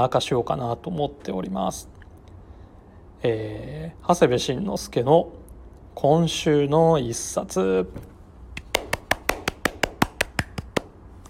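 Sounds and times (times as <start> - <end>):
speech: 0.0 - 2.0, 3.2 - 5.4, 6.0 - 8.1
one person clapping hands: 8.6 - 11.0.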